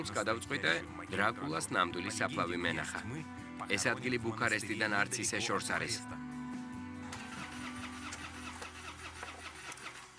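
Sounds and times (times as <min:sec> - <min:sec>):
speech: 0:00.0 - 0:06.2
cheap car engine cranking and failing to start: 0:07.1 - 0:10.1.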